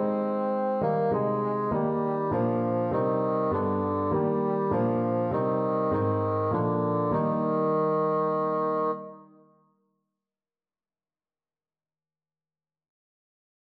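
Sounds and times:
bassoon: 0:00.0 - 0:09.6.

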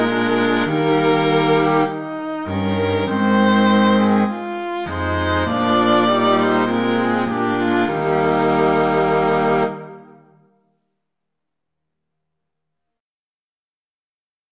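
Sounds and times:
string quartet: 0:00.0 - 0:10.2.

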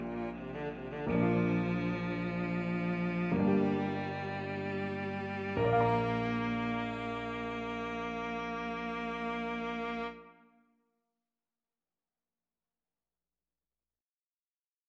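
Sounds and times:
cello piece: 0:00.0 - 0:10.5.

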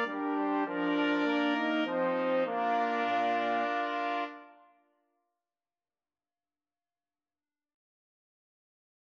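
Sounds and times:
brass quartet playing: 0:00.0 - 0:04.6.

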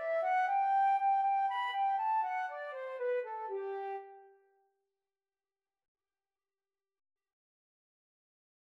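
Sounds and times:
flute: 0:00.0 - 0:04.4.

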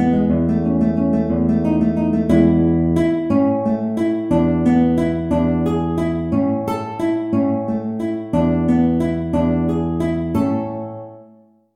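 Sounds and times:
guitar waltz in A: 0:00.0 - 0:11.6.

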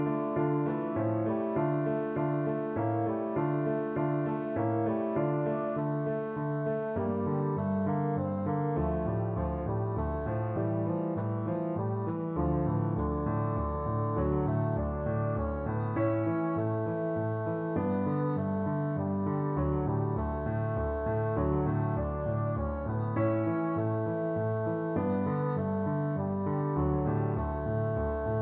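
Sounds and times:
bassoon playing a lullaby: 0:00.1 - 0:28.4.

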